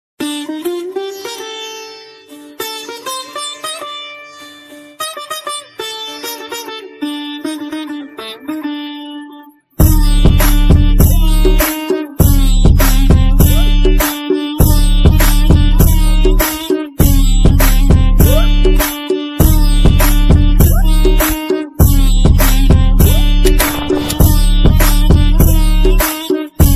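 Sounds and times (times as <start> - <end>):
music ringtone: 9.9 - 26.7.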